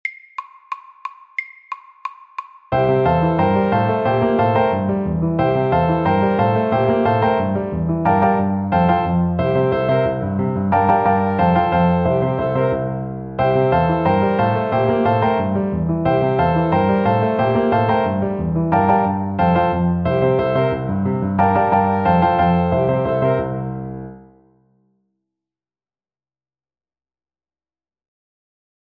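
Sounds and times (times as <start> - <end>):
fast honky tonk piano: 2.7 - 24.3.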